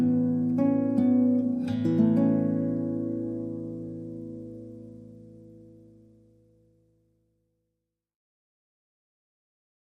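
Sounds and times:
solo guitar: 0:00.0 - 0:07.7.

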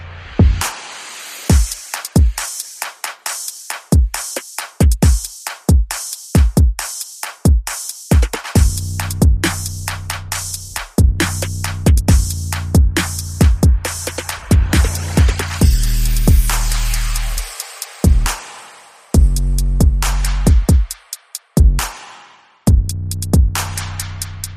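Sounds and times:
bass: 0:00.0 - 0:00.7, 0:08.6 - 0:18.4, 0:19.2 - 0:20.8, 0:21.6 - 0:21.9, 0:22.7 - 0:24.5
drums: 0:00.0 - 0:24.5.

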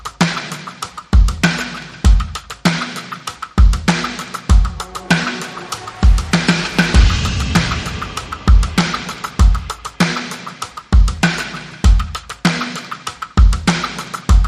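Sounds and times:
drums: 0:00.0 - 0:14.4
sound effects: 0:04.4 - 0:10.4.

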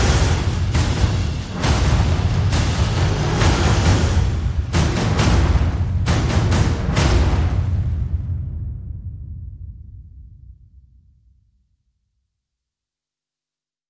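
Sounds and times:
percussion: 0:00.0 - 0:09.8.

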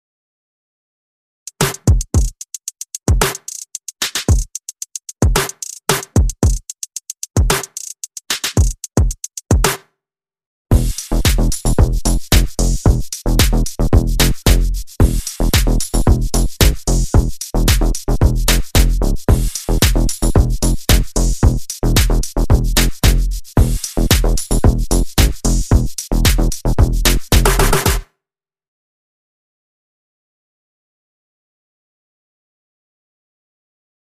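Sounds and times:
drum and bass music: 0:01.5 - 0:09.8, 0:10.7 - 0:28.0.

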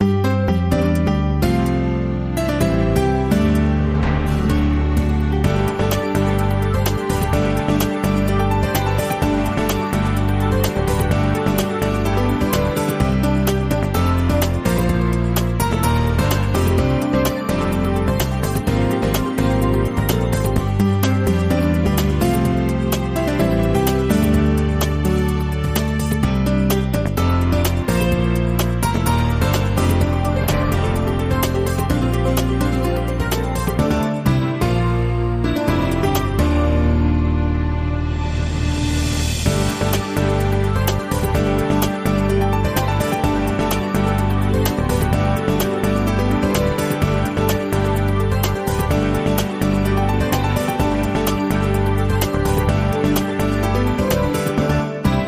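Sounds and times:
breaking news morning music: 0:00.8 - 0:55.2.

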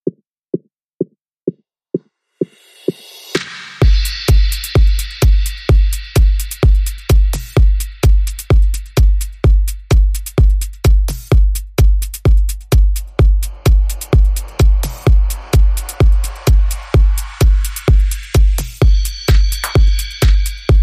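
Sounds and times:
music beat: 0:00.0 - 0:20.8.

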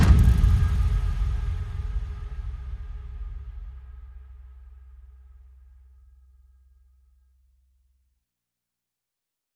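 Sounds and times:
tribal music mix: 0:00.0 - 0:06.4.

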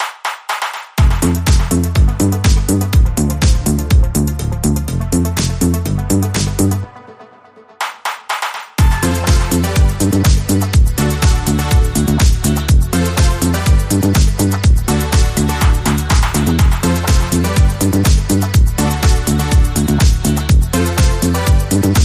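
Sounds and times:
electro club music: 0:00.0 - 0:22.0.

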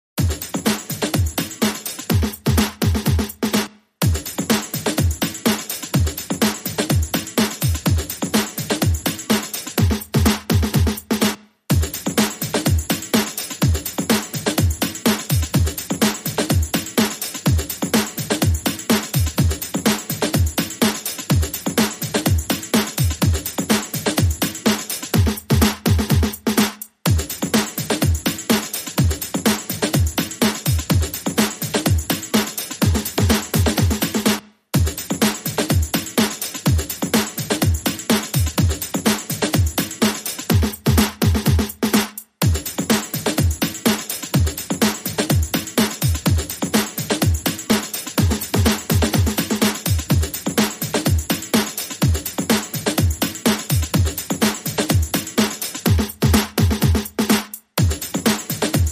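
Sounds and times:
drums: 0:00.2 - 0:58.9.

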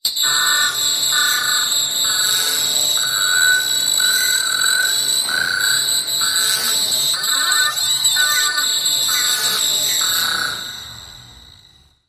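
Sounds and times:
apocalypse warning signal: 0:00.1 - 0:12.0.

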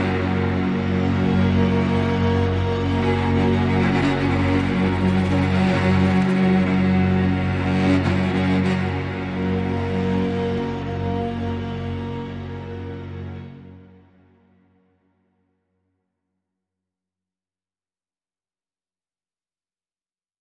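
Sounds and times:
strings: 0:00.0 - 0:15.2.

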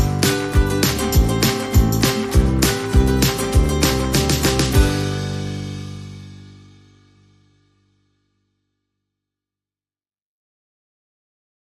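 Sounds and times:
festive shuffle music: 0:00.0 - 0:06.8.

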